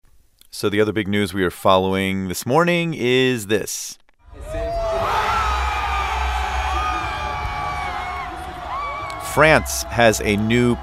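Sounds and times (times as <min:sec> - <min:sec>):
speech: 0:00.6 - 0:04.6, 0:09.3 - 0:10.8
crowds cheering in front of the Louvre Museum: 0:04.2 - 0:10.8.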